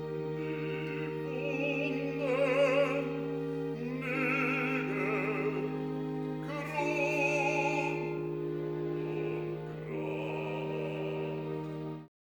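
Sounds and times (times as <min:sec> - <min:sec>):
bass singer recitative from a cantata: 0:00.2 - 0:12.0.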